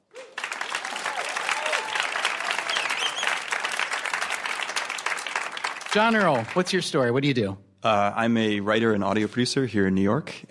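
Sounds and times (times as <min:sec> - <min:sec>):
audience applause welcoming the final contestant of an evening game show: 0:00.0 - 0:07.0
speech: 0:06.0 - 0:10.4.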